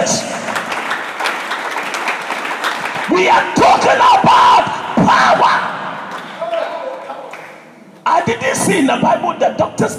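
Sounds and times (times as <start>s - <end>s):
audience clapping: 0.0s - 3.9s, 6.0s - 8.0s
speech: 3.2s - 5.8s, 8.3s - 9.9s.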